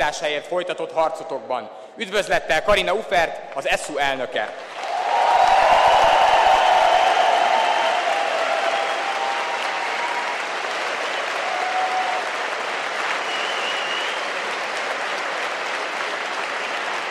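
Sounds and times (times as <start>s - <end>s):
speech: 0.1s - 4.8s
audience applause: 4.6s - 17.1s.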